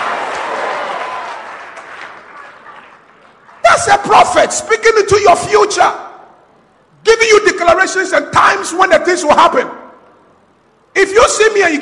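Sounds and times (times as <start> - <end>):
audience clapping hands: 0.0 - 3.6
speech: 3.8 - 6.0, 7.2 - 9.8, 11.1 - 11.8.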